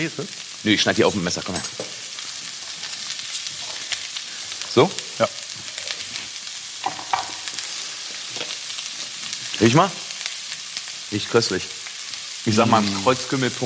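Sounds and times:
speech: 0.0 - 2.0, 4.7 - 5.4, 9.6 - 10.0, 11.1 - 11.8, 12.4 - 13.6
stir-frying food sizzling in a pan: 0.0 - 13.6.

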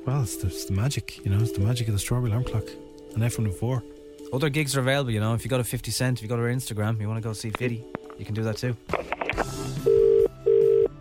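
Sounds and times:
speech: 0.1 - 10.0
telephone ringing: 9.8 - 10.9.

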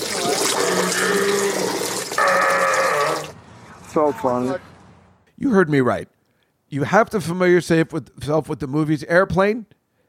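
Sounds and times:
man urinating: 0.0 - 3.4
speech: 4.0 - 4.7, 5.4 - 9.8.

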